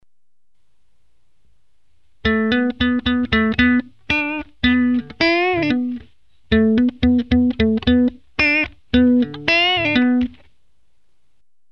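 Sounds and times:
electric guitar: 0:02.2 - 0:10.4.

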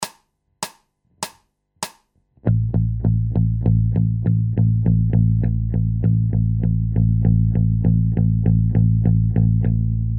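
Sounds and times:
bass loops: 0:02.4 - 0:10.1.

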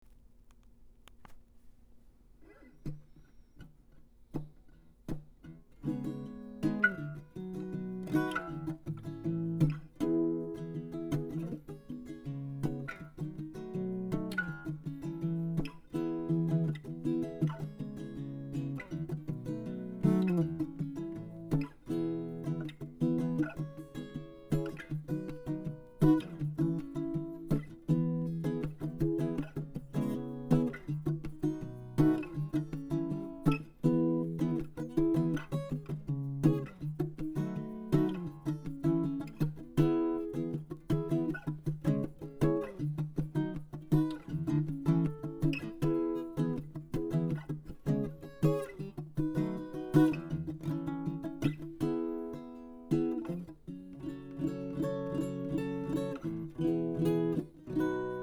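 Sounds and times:
acoustic guitar: 0:02.4 - 0:58.2.

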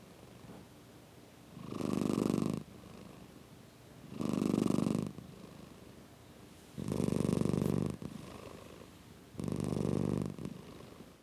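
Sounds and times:
cat purring: 0:01.5 - 0:03.3, 0:04.1 - 0:05.8, 0:06.8 - 0:11.2.

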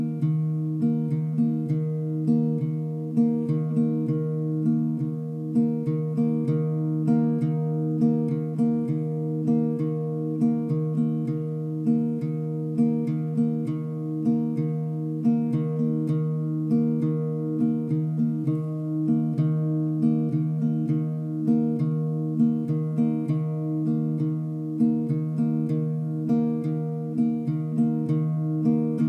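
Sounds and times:
chill acoustic guitar groove: 0:00.0 - 0:29.0.

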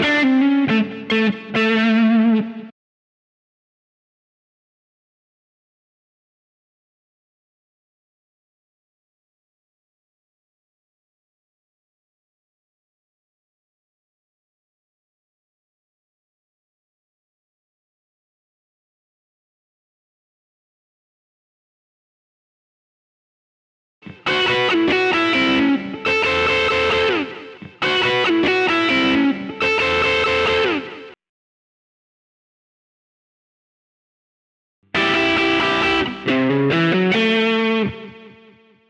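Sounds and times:
country rock music in A: 0:00.0 - 0:02.6, 0:24.2 - 0:31.2, 0:35.0 - 0:38.4.

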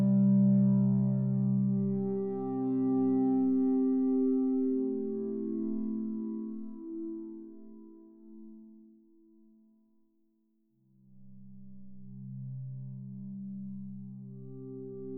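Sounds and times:
woodwind pad ambience: 0:00.0 - 0:07.4.

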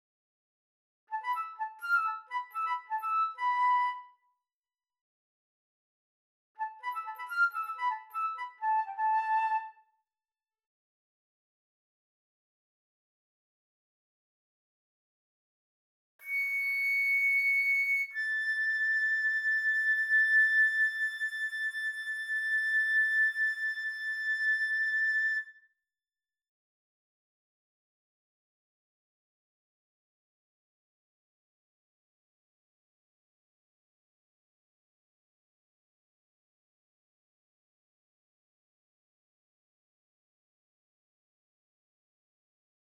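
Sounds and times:
flute: 0:01.1 - 0:04.3, 0:06.6 - 0:10.0, 0:16.2 - 0:25.8.

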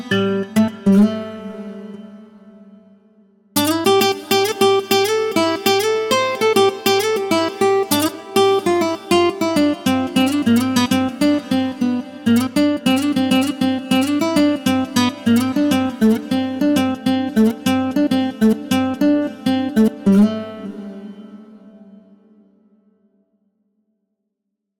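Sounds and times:
nylon guitar: 0:00.0 - 0:22.8.

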